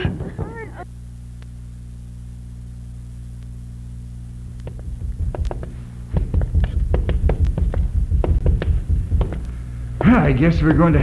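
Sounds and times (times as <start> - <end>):
pounding hard on a door: 4.7 - 9.4
speech: 10.1 - 11.0.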